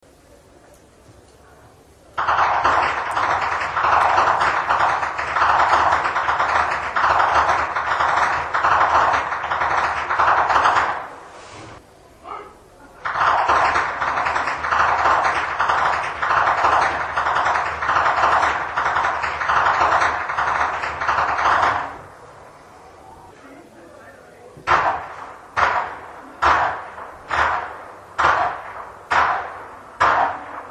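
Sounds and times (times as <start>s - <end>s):
whip cracking in Flachgau: 2.2s - 11.1s, 13.0s - 22.0s, 24.7s - 30.7s.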